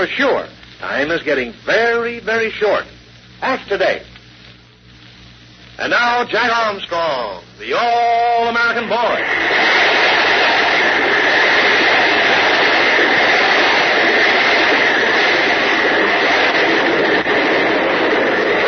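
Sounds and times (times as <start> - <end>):
speech: 0.0 - 4.1, 5.8 - 9.8
tremendous waterspout at sea roaring: 8.0 - 18.6.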